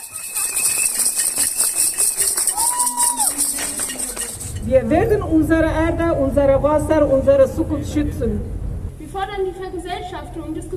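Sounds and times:
street protest demonstration crowd: 0:00.0 - 0:04.6
speech: 0:04.7 - 0:10.7.

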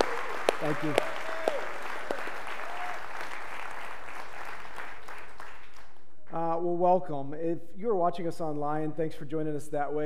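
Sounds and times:
church congregation applauding the worship team: 0:00.0 - 0:06.0
speech: 0:00.6 - 0:01.2, 0:06.8 - 0:10.0.

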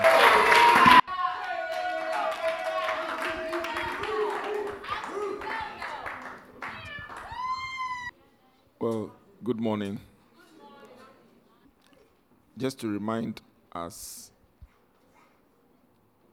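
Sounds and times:
audience applause: 0:00.0 - 0:07.6
crowd cheering: 0:00.0 - 0:08.1
speech: 0:09.5 - 0:10.1, 0:12.6 - 0:14.3.

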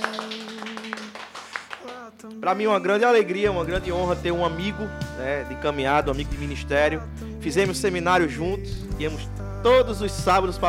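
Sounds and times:
audience applause: 0:00.0 - 0:02.0
speech: 0:02.4 - 0:10.6.

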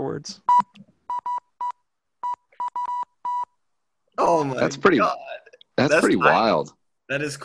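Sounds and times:
speech: 0:00.0 - 0:00.8, 0:04.3 - 0:07.4
beeps like Morse code: 0:00.5 - 0:03.6.

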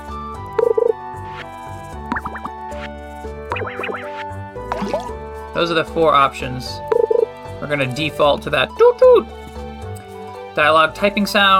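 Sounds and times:
video game fishing bite sound effect: 0:02.1 - 0:02.6, 0:03.5 - 0:05.2
speech: 0:05.6 - 0:06.8, 0:07.6 - 0:09.4, 0:10.6 - 0:11.5.

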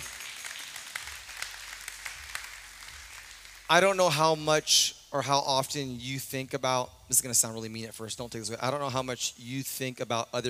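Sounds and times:
audience applause: 0:00.0 - 0:03.8
speech: 0:03.7 - 0:10.4.

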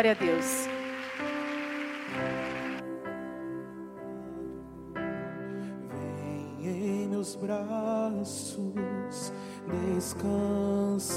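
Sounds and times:
speech: 0:00.0 - 0:00.7, 0:02.1 - 0:02.4, 0:07.2 - 0:11.1
audience clapping: 0:00.0 - 0:02.8
sustained keyboard chords: 0:00.0 - 0:11.1.

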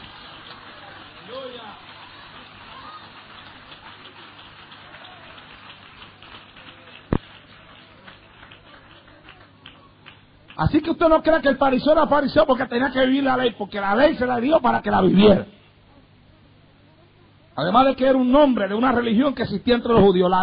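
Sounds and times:
audience clapping hands in sustained applause: 0:00.0 - 0:10.7
speech: 0:10.6 - 0:15.6, 0:17.6 - 0:20.4.

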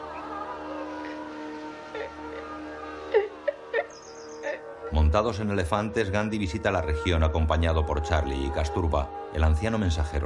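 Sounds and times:
woman crying: 0:00.0 - 0:04.9
speech: 0:04.9 - 0:10.2.

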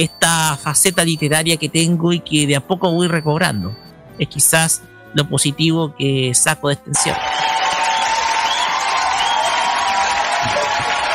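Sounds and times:
speech: 0:00.0 - 0:07.8
audience clapping for a poet: 0:07.0 - 0:11.1
audience whooping for a poet: 0:07.0 - 0:11.1.

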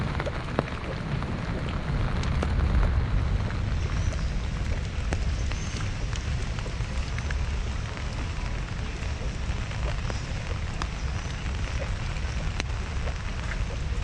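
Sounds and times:
low rumble: 0:00.0 - 0:14.0
steady rain in Central Park: 0:00.0 - 0:14.0.

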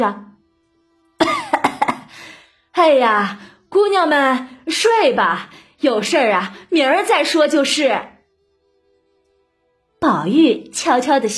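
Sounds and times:
speech: 0:00.0 - 0:00.2, 0:02.8 - 0:08.1, 0:10.0 - 0:11.3
old woman on night duty coughing: 0:01.2 - 0:02.1.

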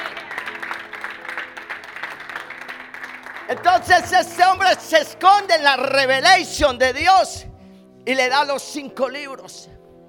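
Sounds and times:
audience applauding: 0:00.0 - 0:05.7
speech: 0:03.5 - 0:09.8.

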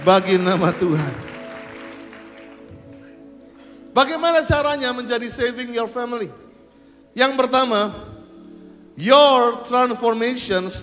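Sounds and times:
speech: 0:00.0 - 0:01.3, 0:04.0 - 0:06.4, 0:07.2 - 0:08.1, 0:09.0 - 0:10.8
audience applause: 0:00.0 - 0:03.2.

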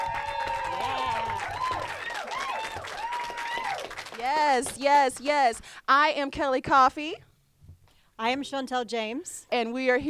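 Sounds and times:
audience round of applause: 0:00.0 - 0:04.5
speech: 0:04.3 - 0:07.3, 0:08.2 - 0:10.0.

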